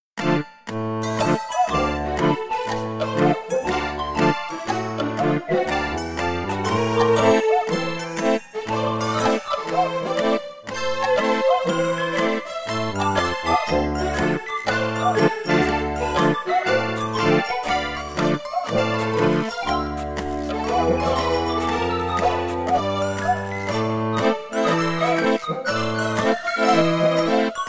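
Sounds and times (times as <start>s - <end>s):
MIDI music: 0.2s - 27.6s.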